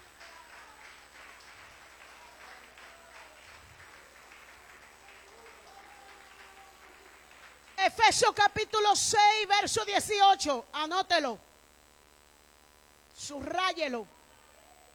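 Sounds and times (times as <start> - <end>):
audience applause: 0.0 - 8.4
speech: 7.9 - 11.5, 13.3 - 14.2.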